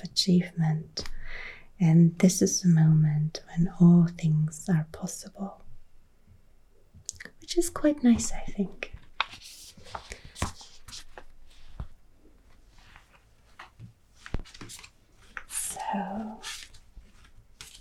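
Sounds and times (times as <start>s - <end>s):
speech: 0.1s - 5.6s, 7.5s - 10.1s
Major Arcana tarot cards gathered and shuffled: 9.0s - 11.9s, 12.9s - 15.5s, 16.4s - 17.8s.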